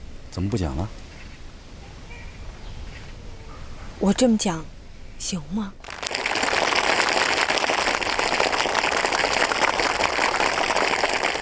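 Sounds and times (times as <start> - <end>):
speech: 0.4 - 1.0, 4.0 - 5.9
audience applause: 5.8 - 11.4.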